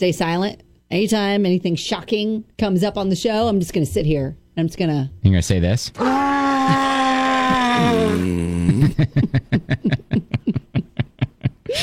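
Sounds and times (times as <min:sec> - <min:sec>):
speech: 0:00.0 - 0:06.9, 0:07.5 - 0:10.8
sea lion wailing and barking: 0:06.0 - 0:08.4
laughter: 0:07.9 - 0:11.8.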